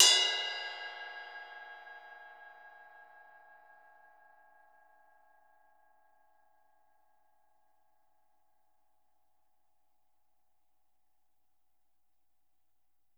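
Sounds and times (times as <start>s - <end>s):
ride drums and percussion: 0.0s - 1.4s.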